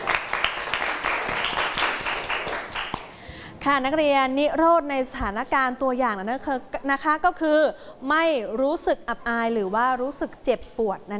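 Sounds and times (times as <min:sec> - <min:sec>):
group of students clapping in a classroom: 0:00.0 - 0:03.2
speech: 0:03.6 - 0:11.1.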